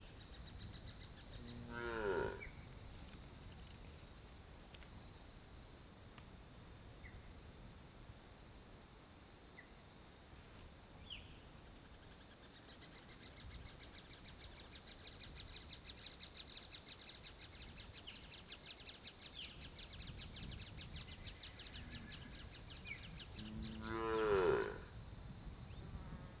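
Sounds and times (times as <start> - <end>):
soft insect hum: 0.0 - 26.3
cow mooing: 1.4 - 2.5, 23.4 - 24.9.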